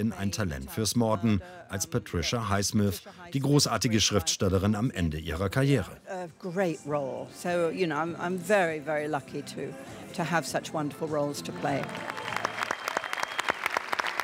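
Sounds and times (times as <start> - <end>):
speech: 0.0 - 12.2
audience applause in cinema hall: 11.5 - 14.2.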